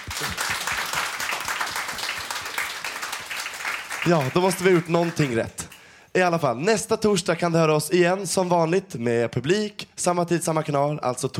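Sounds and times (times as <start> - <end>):
audience applause: 0.0 - 5.5
speech: 4.0 - 11.3.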